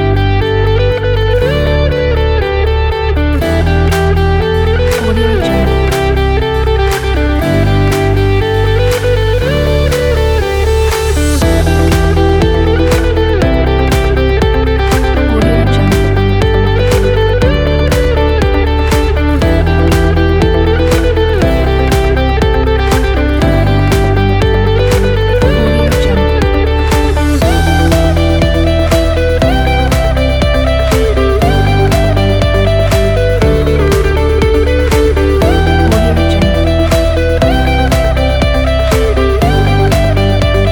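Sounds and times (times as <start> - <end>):
upbeat corporate music: 0.0 - 40.7.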